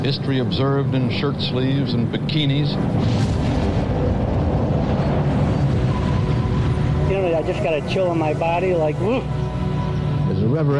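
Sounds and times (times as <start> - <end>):
speech: 0.0 - 3.5, 7.4 - 9.4, 10.4 - 10.7
rocket launch roar: 2.8 - 7.8.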